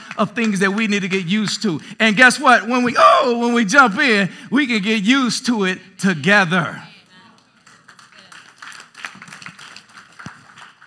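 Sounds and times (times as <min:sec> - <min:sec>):
scattered clapping from part of an audience: 0:00.0 - 0:01.7, 0:07.3 - 0:10.8
speech: 0:00.2 - 0:06.9.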